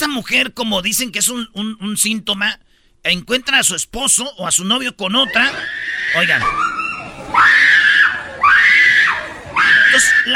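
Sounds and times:
speech: 0.0s - 7.8s, 10.0s - 10.3s
woman screaming: 5.5s - 10.3s.

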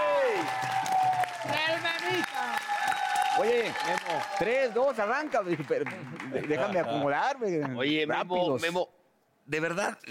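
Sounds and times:
audience applause: 0.0s - 7.1s
speech: 3.4s - 10.0s.

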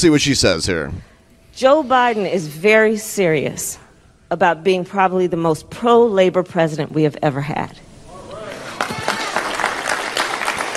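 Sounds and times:
speech: 0.0s - 7.9s
audience clapping: 8.4s - 10.7s.

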